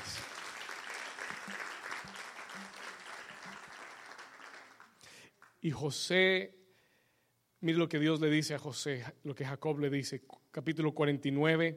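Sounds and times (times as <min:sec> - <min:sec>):
audience applauding loudly: 0:00.0 - 0:05.6
speech: 0:05.6 - 0:06.6, 0:07.6 - 0:11.7.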